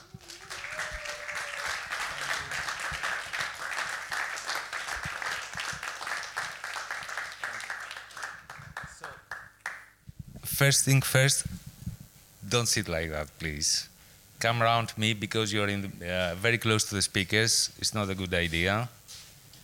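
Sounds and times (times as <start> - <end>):
crowd applauding: 0.0 - 9.9
speech: 10.6 - 11.6, 12.5 - 19.0.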